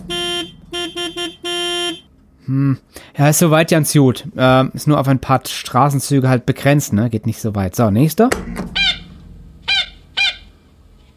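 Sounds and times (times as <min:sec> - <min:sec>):
warning siren being tested: 0:00.0 - 0:02.1, 0:09.6 - 0:10.6
speech: 0:02.5 - 0:08.9.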